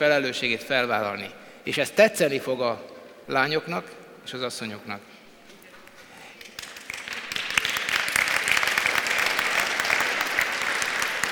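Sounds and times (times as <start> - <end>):
speech: 0.0 - 5.2
audience applause, women clapping: 5.8 - 11.3.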